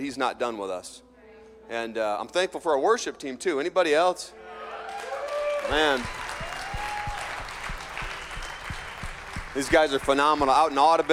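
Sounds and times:
speech: 0.0 - 1.1, 1.7 - 4.4, 5.6 - 6.2, 9.6 - 11.1
audience applauding: 4.7 - 11.1.

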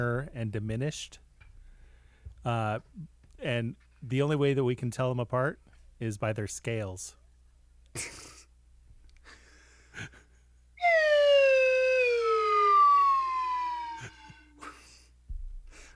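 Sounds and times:
speech: 0.0 - 1.2, 2.4 - 7.2, 8.0 - 8.3, 10.0 - 10.2
slide whistle: 10.8 - 14.9.

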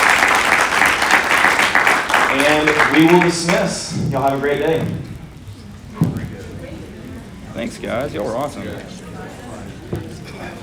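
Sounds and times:
audience applause for panel: 0.0 - 5.3
speech: 2.4 - 5.1, 7.6 - 9.0.

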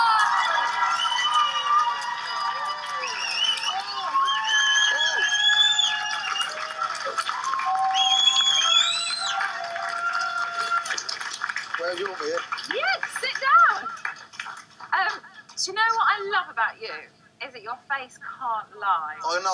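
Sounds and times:
shrill yells and whistle-like cries: 0.0 - 11.0
studio audience cheering on Celebrity Big Brother: 0.0 - 14.5
speech: 15.7 - 19.5.

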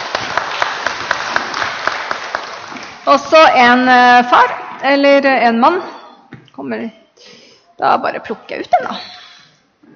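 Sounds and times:
audience applause: 0.0 - 3.1
speech: 3.1 - 5.9, 6.6 - 9.2.

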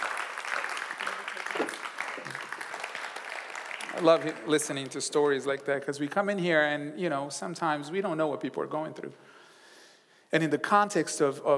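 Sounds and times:
crowd clapping: 0.0 - 6.1
speech: 4.0 - 9.4, 10.3 - 11.5.

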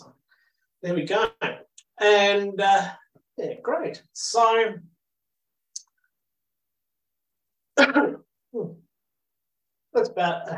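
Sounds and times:
speech: 0.8 - 4.9, 7.8 - 8.8, 10.0 - 10.5
person recovering from COVID coughing: 7.8 - 8.2.

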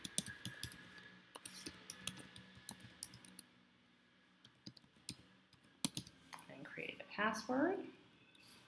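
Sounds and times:
email address typed on a computer keyboard: 0.0 - 3.4, 4.4 - 6.2
speech: 7.2 - 8.0.

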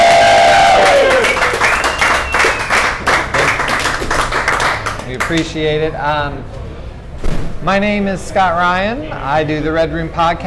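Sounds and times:
live audience cheering: 0.0 - 3.7
live audience applause: 0.0 - 5.4
speech: 5.3 - 6.6, 7.6 - 10.4.

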